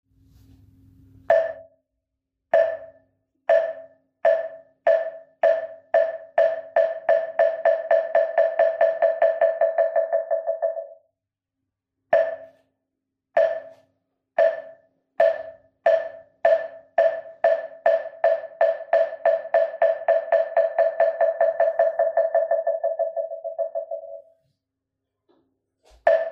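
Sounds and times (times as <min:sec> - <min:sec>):
moktak wooden fish percussion: 0:01.2 - 0:01.8, 0:02.5 - 0:11.0, 0:12.2 - 0:12.6, 0:13.4 - 0:24.3, 0:26.0 - 0:26.3.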